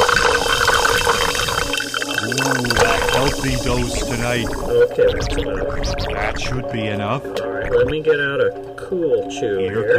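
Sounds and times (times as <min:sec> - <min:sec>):
club soda pouring into a glass: 0:00.0 - 0:04.8
speech: 0:03.4 - 0:09.9.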